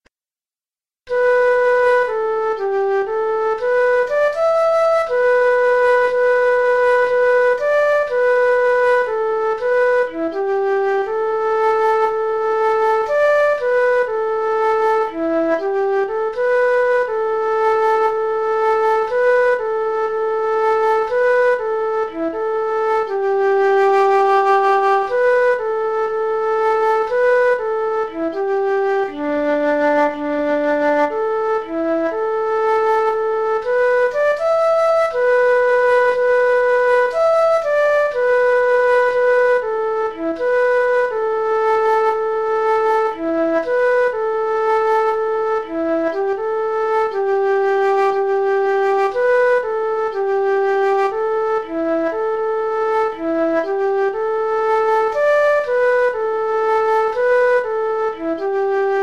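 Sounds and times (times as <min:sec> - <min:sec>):
flute playing G: 0:01.1 - 0:59.0.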